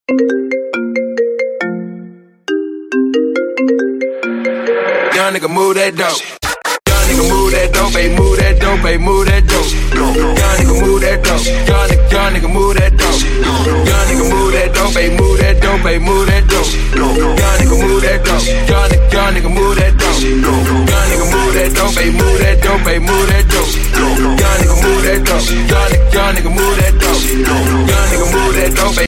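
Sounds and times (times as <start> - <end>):
ringtone remix: 0.1 - 5.8, 6.8 - 29.0.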